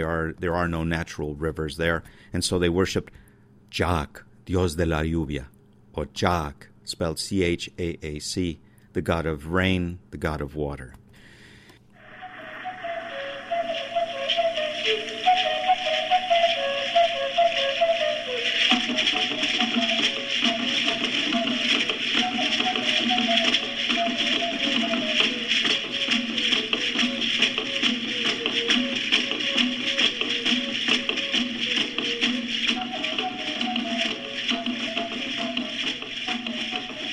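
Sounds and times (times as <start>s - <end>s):
speech: 0.0s - 11.0s
reed flute of bamboo or other reed: 12.0s - 37.1s.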